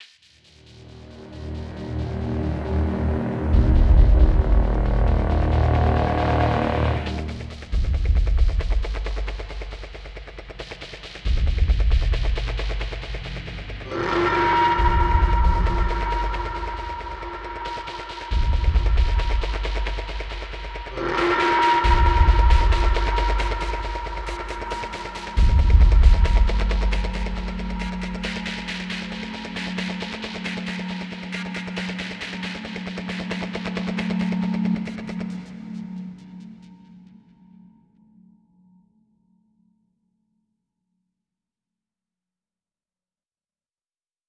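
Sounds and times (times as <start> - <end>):
tense stealth music: 0.3 - 37.6.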